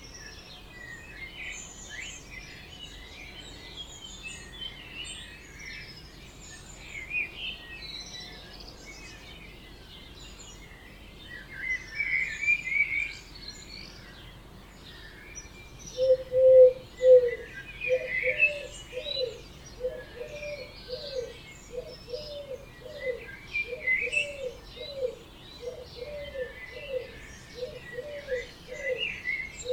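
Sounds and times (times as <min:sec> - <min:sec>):
birds singing in chorus: 0:00.0 - 0:29.7
bird repeating low hooting notes: 0:16.0 - 0:29.7.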